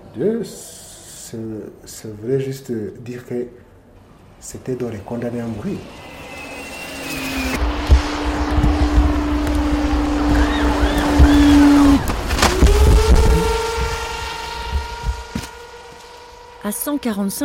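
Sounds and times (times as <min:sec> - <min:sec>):
speech: 0:00.2 - 0:03.7, 0:04.4 - 0:06.1, 0:16.7 - 0:17.4
delivery drone flying overhead: 0:05.0 - 0:17.0.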